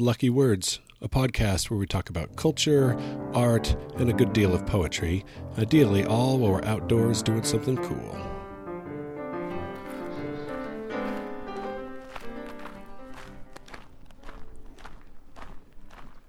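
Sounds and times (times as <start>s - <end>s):
speech: 0.0s - 8.3s
footsteps on the White Rim Trail dirt route in Canyonlands National Park: 9.6s - 16.2s.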